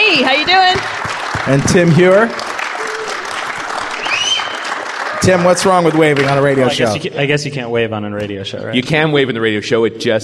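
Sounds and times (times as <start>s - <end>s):
crowd applauding: 0.0s - 7.0s
speech: 0.2s - 2.5s, 5.2s - 10.2s
high whistle or cheer: 3.9s - 5.5s.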